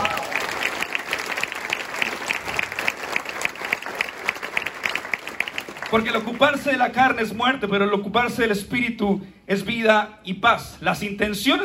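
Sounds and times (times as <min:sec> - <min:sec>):
audience applause: 0:00.0 - 0:06.6
speech: 0:05.9 - 0:11.6.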